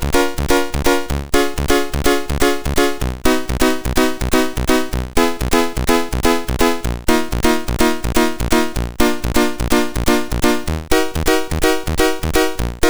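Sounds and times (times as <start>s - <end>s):
piano piece on a MOS6581R4 SID chip: 0.0s - 12.8s.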